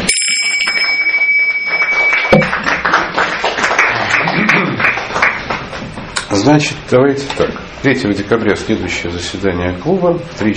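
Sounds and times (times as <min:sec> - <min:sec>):
high ringing tone: 0:00.0 - 0:02.7
club audience clapping: 0:00.7 - 0:06.0
speech: 0:06.4 - 0:10.5.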